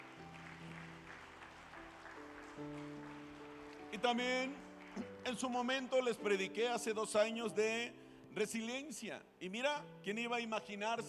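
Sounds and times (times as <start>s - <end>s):
audience applause: 0.0s - 6.2s
speech: 2.6s - 2.9s, 3.9s - 11.0s.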